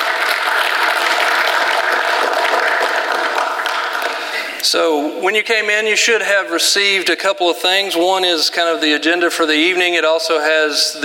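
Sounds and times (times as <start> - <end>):
audience applause: 0.0 - 4.6
speech: 4.6 - 11.0.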